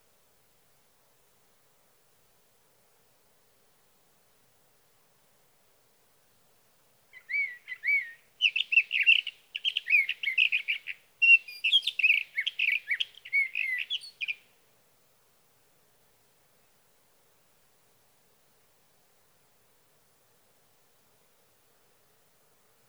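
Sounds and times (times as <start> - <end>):
Sage Thrasher singing through the night: 7.2 - 14.4.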